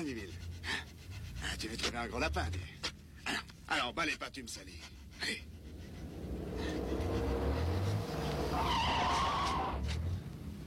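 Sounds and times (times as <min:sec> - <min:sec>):
speech: 0:00.0 - 0:00.8, 0:01.4 - 0:05.5
car tyres squealing in a skid: 0:05.5 - 0:10.2
car engine roar: 0:05.6 - 0:10.6.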